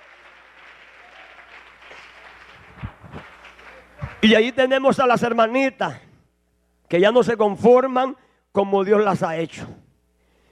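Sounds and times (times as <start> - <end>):
audience clapping: 0.0 - 4.6
speech: 4.2 - 6.0, 6.9 - 9.8.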